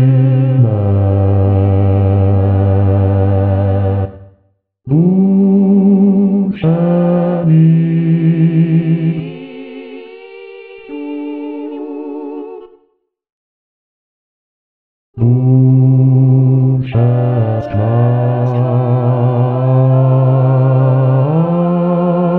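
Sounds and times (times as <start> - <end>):
bass voice singing a chant: 0.0 - 4.3, 4.9 - 9.9, 15.2 - 22.3.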